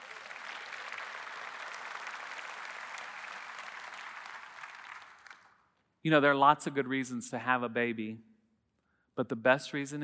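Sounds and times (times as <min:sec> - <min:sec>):
audience applause: 0:00.0 - 0:05.6
speech: 0:06.0 - 0:08.3, 0:09.2 - 0:10.0.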